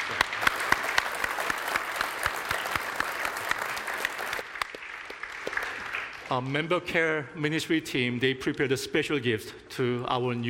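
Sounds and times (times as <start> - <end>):
audience applauding new church members: 0.0 - 6.7
speech: 6.3 - 10.4.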